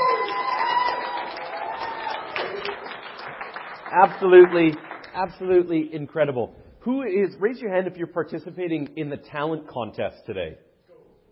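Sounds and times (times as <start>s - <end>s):
whoops and cheers: 0.0s - 2.8s
crowd applause: 0.0s - 5.5s
speech: 3.9s - 10.6s.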